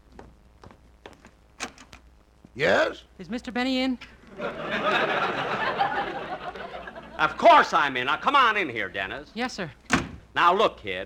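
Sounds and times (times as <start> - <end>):
door being answered and opened, clicks and thumps: 1.6 - 2.0, 9.9 - 10.3
speech: 2.6 - 5.6, 7.2 - 9.8, 10.4 - 11.0
laughter: 4.3 - 8.5.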